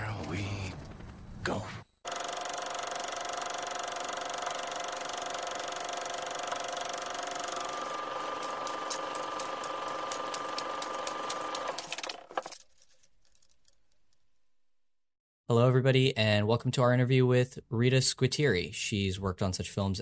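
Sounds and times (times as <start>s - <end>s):
speech: 1.5s - 1.8s, 15.5s - 20.0s
film projector running: 2.1s - 12.6s.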